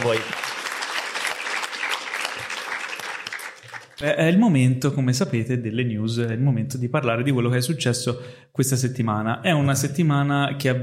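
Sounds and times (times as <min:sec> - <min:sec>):
speech: 0:00.0 - 0:00.4, 0:04.0 - 0:10.8
audience applause: 0:00.0 - 0:04.0.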